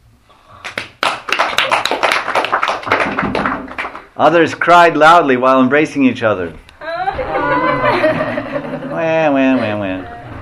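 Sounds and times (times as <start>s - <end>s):
devotees clapping hands: 0.6s - 4.1s
speech: 4.2s - 6.6s
laughter: 6.9s - 10.3s.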